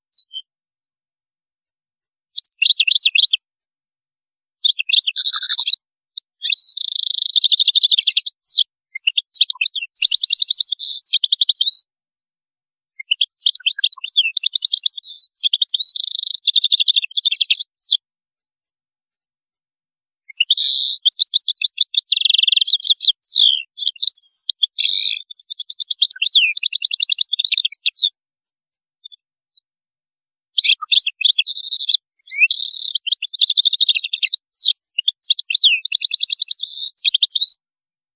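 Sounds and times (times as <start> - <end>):
European goldfinch song: 0.1 - 0.5, 2.3 - 3.4, 4.6 - 11.9, 13.0 - 18.0, 20.2 - 28.2, 30.5 - 37.6.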